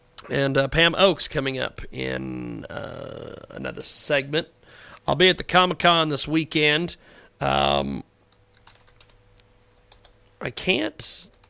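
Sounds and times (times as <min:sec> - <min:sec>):
speech: 0:00.3 - 0:08.1, 0:10.4 - 0:11.3
typing on a computer keyboard: 0:08.5 - 0:09.2, 0:09.9 - 0:10.2.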